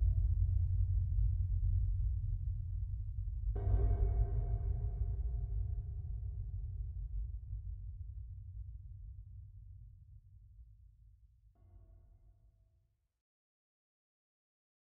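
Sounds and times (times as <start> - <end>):
underground ambience: 0.0 - 8.2.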